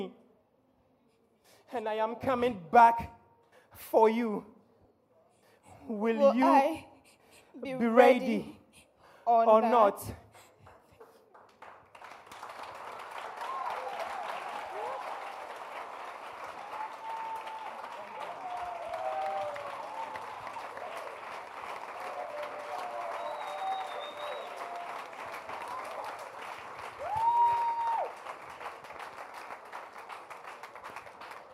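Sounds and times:
speech: 1.7 - 3.2, 3.8 - 4.6, 5.9 - 6.9, 7.6 - 8.6, 9.3 - 10.2
audience applause in church: 11.0 - 31.5.

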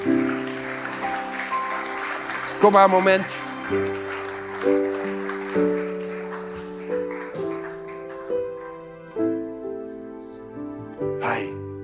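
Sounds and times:
audience applause: 0.0 - 9.4
speech: 2.6 - 4.9.

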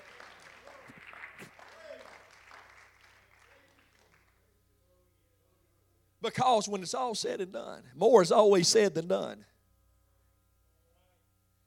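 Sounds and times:
audience clapping hands: 0.0 - 4.5
speech: 6.2 - 9.5.

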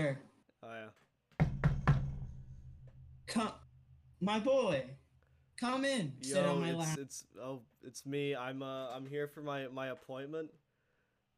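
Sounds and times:
speech: 0.0 - 1.0, 3.3 - 3.6, 4.2 - 5.0, 5.6 - 10.6
knocking on a door: 1.4 - 2.4.

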